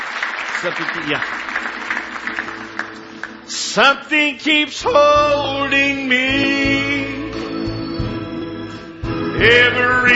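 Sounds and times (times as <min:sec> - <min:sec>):
audience clapping hands in praise: 0:00.0 - 0:03.5
speech: 0:00.6 - 0:01.7, 0:03.5 - 0:07.2, 0:09.4 - 0:10.1.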